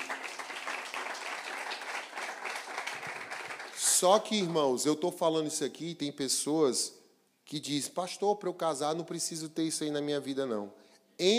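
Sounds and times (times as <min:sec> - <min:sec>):
audience applause: 0:00.0 - 0:04.0
speech: 0:04.0 - 0:11.3.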